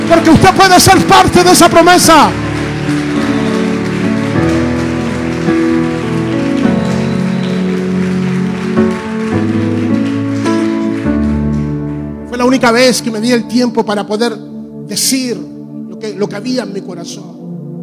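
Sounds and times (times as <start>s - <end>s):
crowd clapping loudly: 0.0s - 13.4s
speech: 0.1s - 3.1s, 12.5s - 17.4s.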